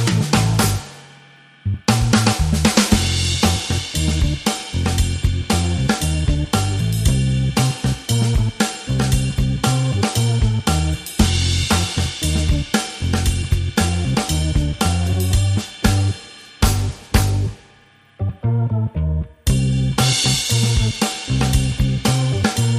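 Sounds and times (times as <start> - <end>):
drum and bass music: 0.0 - 1.0, 1.6 - 22.7.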